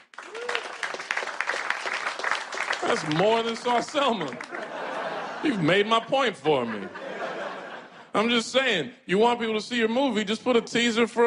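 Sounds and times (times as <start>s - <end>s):
audience applause: 0.0s - 5.4s
person whooping: 0.2s - 0.9s
speech: 2.8s - 4.6s, 5.4s - 7.0s, 8.1s - 11.2s
laughter: 2.8s - 8.3s.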